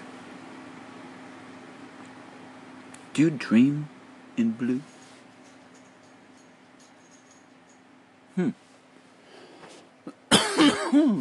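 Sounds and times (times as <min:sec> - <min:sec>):
speech: 0:03.2 - 0:04.9, 0:08.4 - 0:08.6, 0:10.9 - 0:11.1
person coughing: 0:10.1 - 0:11.1.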